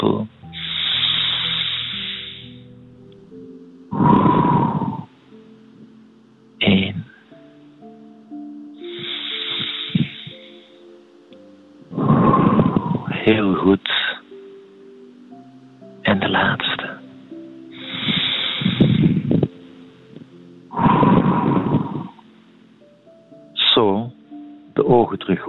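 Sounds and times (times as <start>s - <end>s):
speech: 0.0s - 0.3s
soft sustained tones: 0.0s - 25.4s
slow deep breathing: 0.5s - 6.0s, 8.8s - 11.0s, 11.9s - 13.3s, 17.7s - 22.6s.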